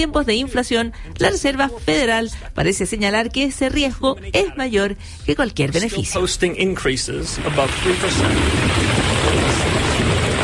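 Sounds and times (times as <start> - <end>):
speech: 0.0 - 9.8
heavy torrential rain in Valencia Spain: 7.3 - 10.4.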